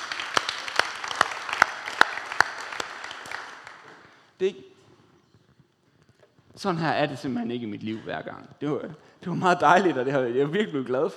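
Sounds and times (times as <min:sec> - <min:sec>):
audience applause: 0:00.0 - 0:04.2
speech: 0:04.4 - 0:04.7, 0:06.6 - 0:11.1.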